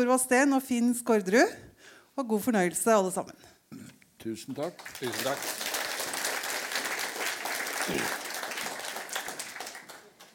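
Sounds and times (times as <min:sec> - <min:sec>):
speech: 0:00.0 - 0:05.7, 0:07.9 - 0:08.2
audience applause: 0:04.6 - 0:10.3.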